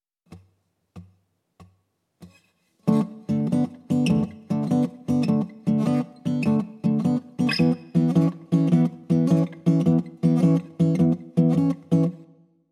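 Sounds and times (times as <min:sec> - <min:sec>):
blues rock guitar in open tunings: 0:02.9 - 0:12.2.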